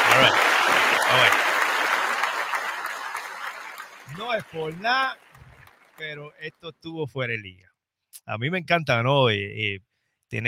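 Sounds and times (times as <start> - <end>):
audience applause: 0.0 - 6.4
speech: 0.2 - 0.5, 4.2 - 5.2, 6.0 - 10.4.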